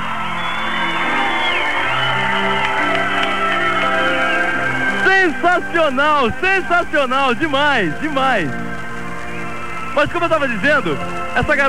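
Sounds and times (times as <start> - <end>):
shrill screams and whistles: 0.0 - 5.1
concert audience cheering: 0.0 - 11.6
speech: 5.3 - 8.7, 10.0 - 11.6.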